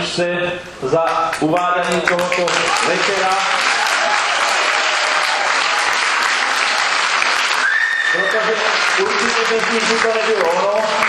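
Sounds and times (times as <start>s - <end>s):
speech: 0.2s - 3.8s, 8.1s - 11.0s
audience applause: 1.8s - 11.0s
thin high whistle: 7.6s - 8.4s.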